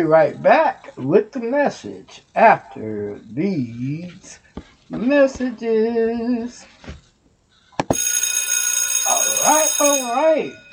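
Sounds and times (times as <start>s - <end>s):
speech: 0.0s - 7.0s, 9.4s - 10.6s
bell ringing: 7.9s - 10.7s.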